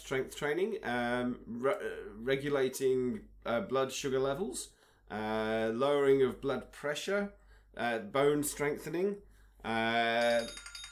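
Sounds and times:
speech: 0.1s - 10.7s
bell ringing: 10.2s - 10.8s.

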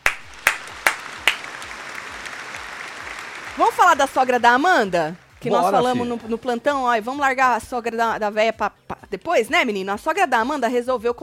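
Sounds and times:
applause: 0.0s - 6.3s
speech: 3.6s - 11.2s.

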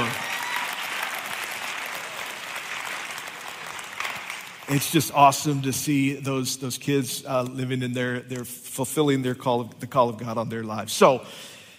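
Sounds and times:
church audience applause from a large audience: 0.0s - 5.2s
speech: 4.7s - 11.5s.

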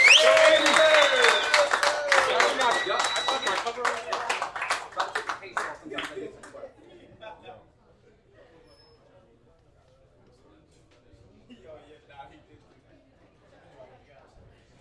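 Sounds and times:
cheering and whooping voices: 0.0s - 3.7s
audience clapping: 0.0s - 6.6s.

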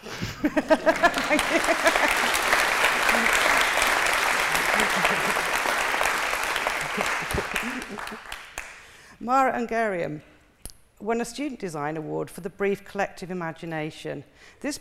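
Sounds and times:
laughter: 0.0s - 8.4s
speech: 0.2s - 2.0s, 7.7s - 8.4s, 9.2s - 10.3s, 11.0s - 14.7s
applause: 0.8s - 9.0s.

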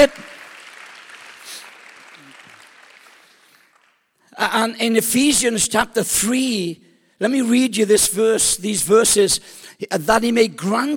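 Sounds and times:
speech: 0.0s - 0.3s, 4.4s - 10.9s
audience clapping: 0.0s - 4.2s.

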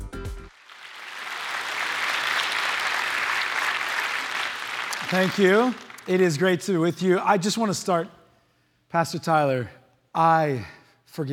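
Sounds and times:
church congregation clapping: 0.5s - 7.0s
speech: 5.1s - 8.2s, 8.9s - 11.3s.

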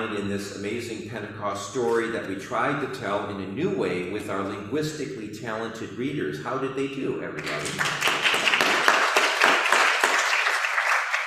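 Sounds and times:
speech: 0.1s - 8.1s
crowd applauding in a room: 7.4s - 11.2s.

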